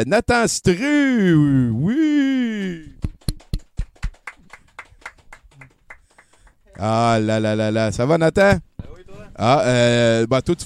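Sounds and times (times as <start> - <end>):
speech: 0.0 - 3.0, 6.8 - 8.7, 9.4 - 10.6
applause for guest: 2.8 - 7.0.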